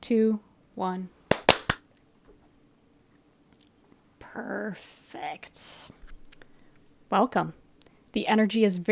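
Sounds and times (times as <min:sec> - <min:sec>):
speech: 0:00.1 - 0:01.2, 0:04.4 - 0:06.0, 0:07.1 - 0:08.9
hand clap for audio sync: 0:01.3 - 0:01.8.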